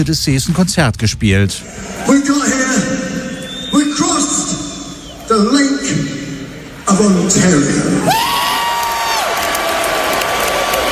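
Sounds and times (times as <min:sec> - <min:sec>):
speech: 0:00.0 - 0:03.0, 0:05.3 - 0:06.2, 0:06.9 - 0:08.5
concert audience cheering for a band on the Canadian side of Lake Ontario: 0:01.6 - 0:03.7, 0:08.0 - 0:10.9
high whoop: 0:08.1 - 0:09.7.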